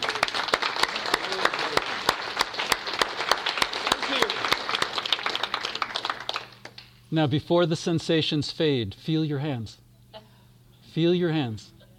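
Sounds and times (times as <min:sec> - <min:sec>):
crowd applauding: 0:00.0 - 0:06.9
speech: 0:07.1 - 0:09.8, 0:10.9 - 0:11.8.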